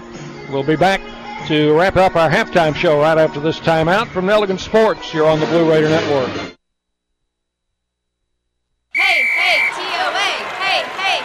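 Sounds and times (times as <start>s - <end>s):
speech: 0.5s - 6.6s
crowd cheer: 9.0s - 11.2s.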